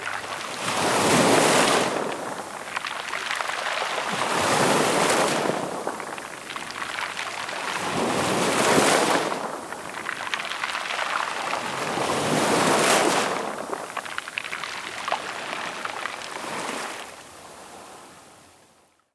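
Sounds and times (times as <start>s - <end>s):
sea waves: 0.0s - 18.6s.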